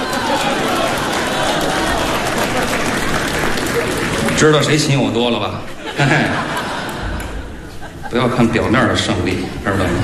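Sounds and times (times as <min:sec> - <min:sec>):
laughter: 0:00.0 - 0:04.3, 0:05.3 - 0:09.6
audience applause: 0:00.0 - 0:07.8
speech: 0:04.4 - 0:06.5, 0:08.1 - 0:10.0.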